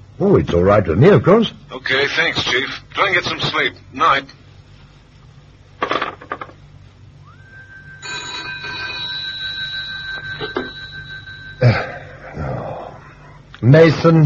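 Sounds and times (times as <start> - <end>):
speech: 0.2 - 4.4, 11.6 - 11.9, 13.6 - 14.2
sharp knocks and clatters: 5.8 - 6.6
telephone ringing: 7.4 - 12.2.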